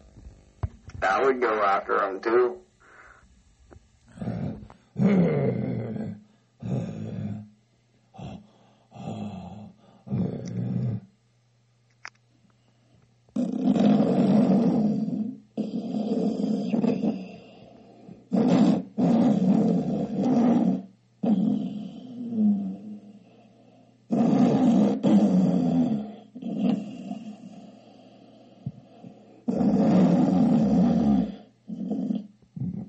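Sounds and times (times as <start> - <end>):
speech: 1.0 - 2.7
loud snoring: 4.1 - 7.5, 8.1 - 11.1, 13.4 - 32.8.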